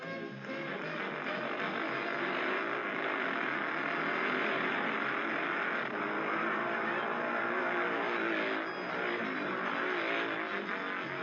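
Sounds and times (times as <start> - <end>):
souped-up speedway motorcycles roaring in a 1968 practice race at Hackney Stadium: 0.0 - 11.2.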